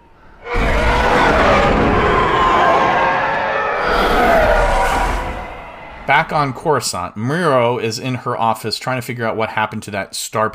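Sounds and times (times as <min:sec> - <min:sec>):
TIE fighter patrol screaming overhead: 0:00.0 - 0:07.1
speech: 0:06.2 - 0:10.5.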